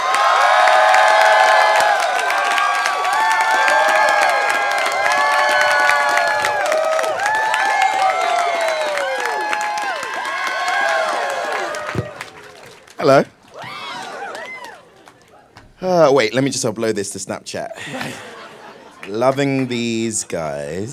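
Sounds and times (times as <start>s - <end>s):
crowd cheering and whooping welcoming John Boyega: 0.0s - 15.2s
steady clapping: 0.0s - 15.7s, 18.9s - 19.9s
speech: 13.0s - 13.3s, 16.0s - 18.3s, 19.1s - 20.9s
laughter: 17.7s - 20.6s.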